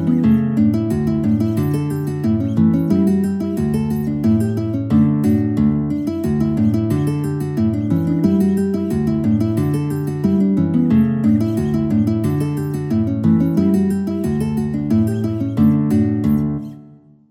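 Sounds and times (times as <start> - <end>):
guitar playing a folk tune: 0.0 - 17.2.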